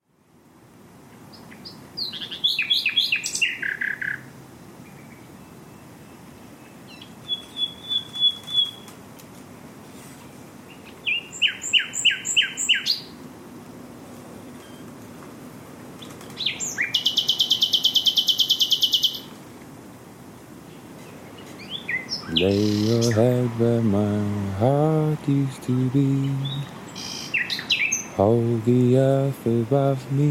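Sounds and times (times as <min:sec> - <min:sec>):
Common Nightingale song: 0:01.1 - 0:09.0, 0:10.6 - 0:13.2, 0:16.0 - 0:19.4, 0:20.6 - 0:30.2
speech: 0:23.6 - 0:26.6, 0:28.2 - 0:30.2.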